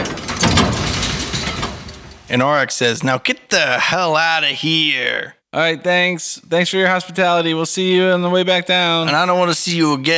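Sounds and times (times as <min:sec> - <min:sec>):
heavy door rumbling as it rolls open: 0:00.0 - 0:02.3
speech: 0:02.3 - 0:10.1.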